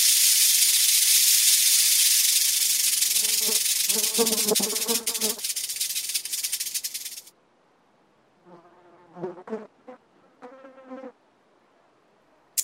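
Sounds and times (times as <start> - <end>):
snake hissing: 0.0 - 7.3.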